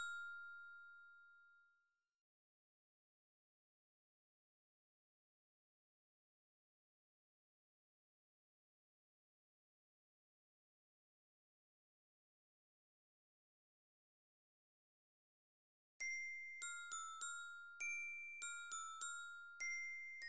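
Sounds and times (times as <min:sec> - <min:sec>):
orchestra bells: 0:16.0 - 0:20.2.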